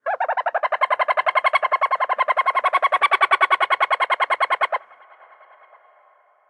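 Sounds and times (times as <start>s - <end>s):
bird ambience: 0.0s - 6.1s.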